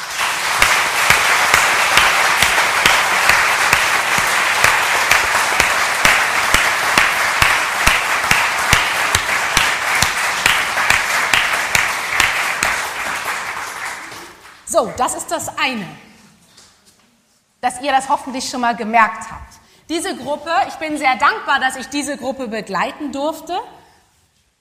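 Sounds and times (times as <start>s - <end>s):
audience applause: 0.0s - 14.6s
speech: 14.8s - 16.1s, 17.6s - 23.8s.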